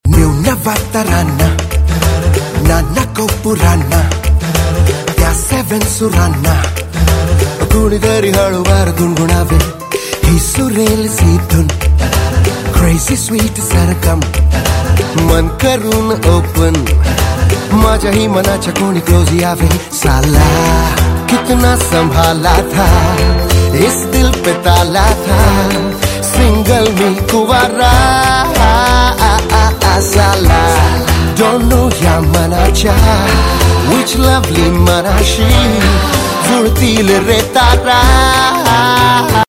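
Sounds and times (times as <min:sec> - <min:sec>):
ringtone: 0:00.4 - 0:39.4.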